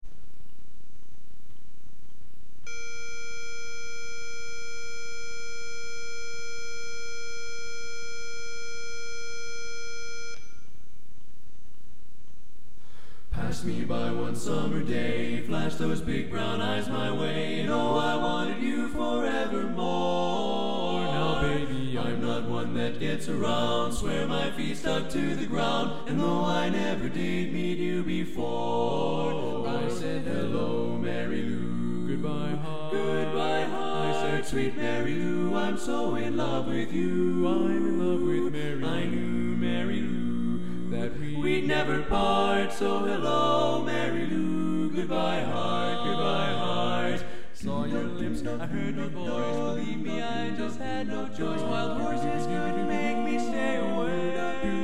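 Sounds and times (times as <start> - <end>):
tenor singing: 13.4 - 54.8.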